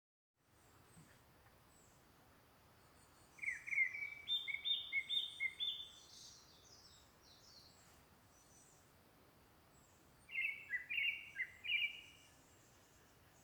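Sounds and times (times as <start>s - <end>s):
bird chirping: 2.8s - 8.8s, 9.7s - 13.4s.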